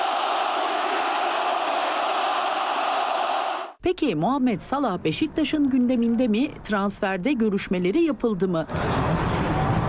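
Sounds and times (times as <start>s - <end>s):
football fans chanting: 0.0s - 3.8s
speech: 3.8s - 9.7s.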